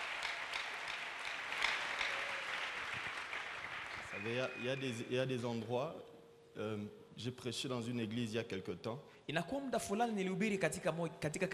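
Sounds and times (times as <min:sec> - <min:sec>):
church congregation applause in Goma: 0:00.0 - 0:05.2
speech: 0:04.2 - 0:11.5.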